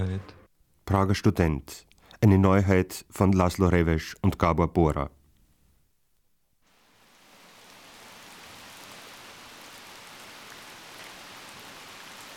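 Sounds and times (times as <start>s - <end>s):
speech: 0.0s - 5.2s
rain at Prague railway station in the late evening: 6.6s - 12.3s.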